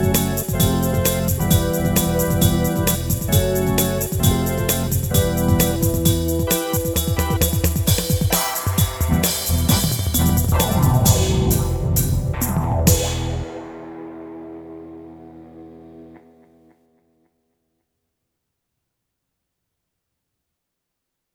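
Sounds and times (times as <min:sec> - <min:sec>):
instrumental music: 0:00.0 - 0:16.8.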